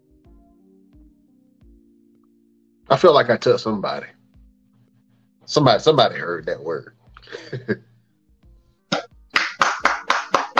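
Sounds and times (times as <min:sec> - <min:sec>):
speech: 0:02.9 - 0:04.2, 0:05.5 - 0:07.9
claps and taps: 0:09.3 - 0:10.5.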